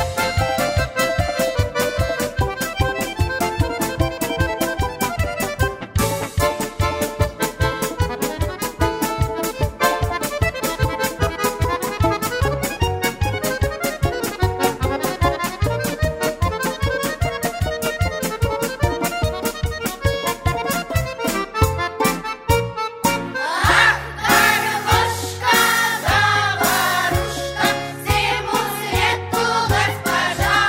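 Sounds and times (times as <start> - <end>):
garmoshka accordion: 0.0 - 30.6
vocal group singing: 23.4 - 30.6.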